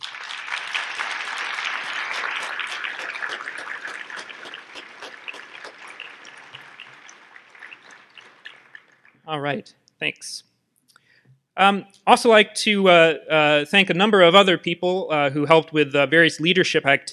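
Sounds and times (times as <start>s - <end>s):
audience applause: 0.0s - 9.0s
speech: 9.3s - 10.5s, 11.6s - 17.1s.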